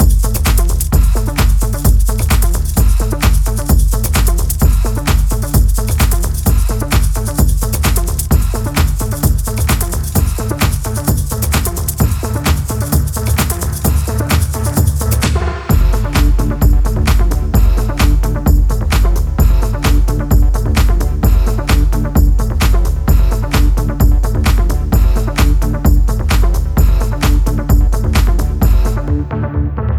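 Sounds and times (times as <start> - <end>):
rolling bass: 0.0 - 29.9.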